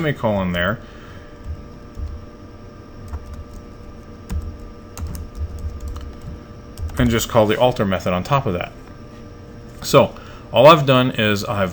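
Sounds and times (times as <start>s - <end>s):
speech: 0.0s - 1.0s, 7.0s - 8.8s, 9.8s - 11.7s
typing PowerShell code on a computer keyboard: 0.0s - 9.0s.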